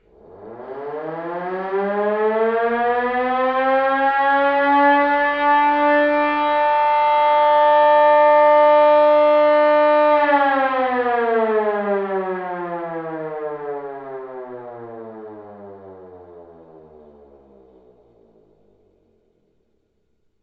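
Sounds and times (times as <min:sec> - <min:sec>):
low long siren: 0:00.0 - 0:19.0.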